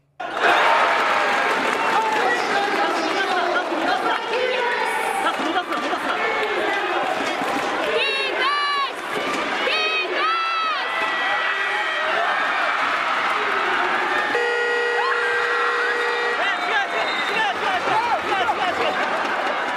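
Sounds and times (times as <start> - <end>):
basketball arena crowd: 0.0 - 19.7
basketball game-end buzzer: 14.3 - 16.9.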